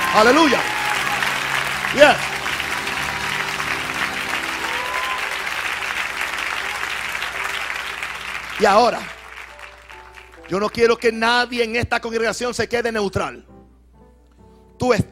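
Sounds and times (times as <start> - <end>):
audience applause: 0.0 - 10.8
speech: 0.1 - 0.8, 1.9 - 2.4, 8.6 - 9.2, 10.5 - 13.5, 14.8 - 15.1.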